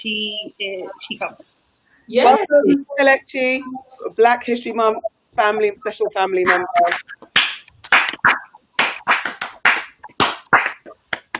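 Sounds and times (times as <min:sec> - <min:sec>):
speech: 0:00.0 - 0:07.3
clapping with the backs of the hands: 0:06.5 - 0:11.3.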